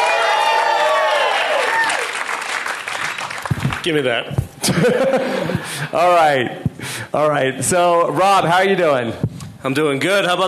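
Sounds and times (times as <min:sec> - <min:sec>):
audience applause: 0:00.0 - 0:04.0
speech: 0:03.9 - 0:10.4
laughter: 0:04.6 - 0:05.9.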